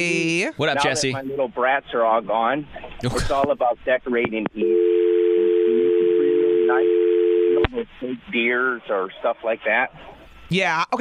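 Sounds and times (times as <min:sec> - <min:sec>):
speech: 0:00.0 - 0:04.9, 0:06.7 - 0:07.0, 0:07.7 - 0:11.0
telephone line tone from a caller still connected on a phone line: 0:04.6 - 0:07.7.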